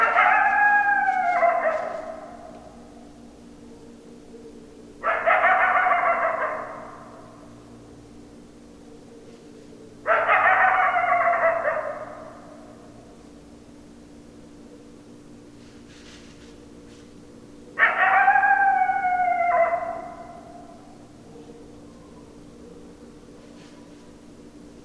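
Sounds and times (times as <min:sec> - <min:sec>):
coyote howling: 0:00.0 - 0:07.5, 0:08.9 - 0:13.0, 0:17.7 - 0:23.4.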